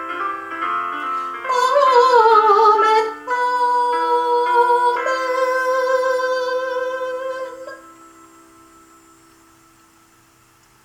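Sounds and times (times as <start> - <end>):
soprano singing solo: 1.4 - 8.0.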